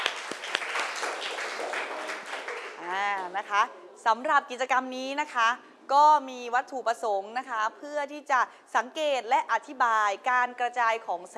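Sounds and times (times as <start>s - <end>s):
classroom applause: 0.0s - 3.6s
speech: 3.2s - 11.3s.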